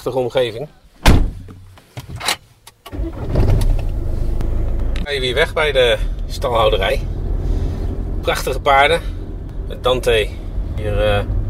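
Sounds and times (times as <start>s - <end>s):
speech: 0.0s - 1.3s, 5.1s - 7.2s, 8.2s - 11.4s
car engine cranking, starting and idling: 2.8s - 11.4s.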